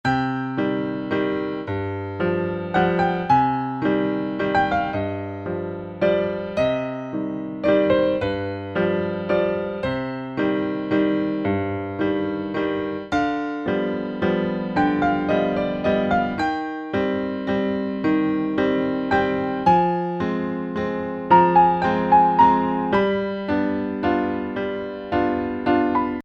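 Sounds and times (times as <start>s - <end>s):
classical music: 0.0s - 26.2s.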